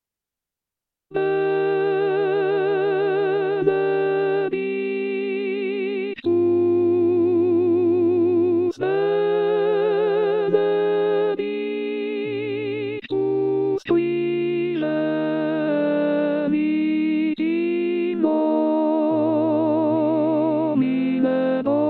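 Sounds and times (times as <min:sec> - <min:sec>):
contralto voices singing: 0:01.1 - 0:21.8.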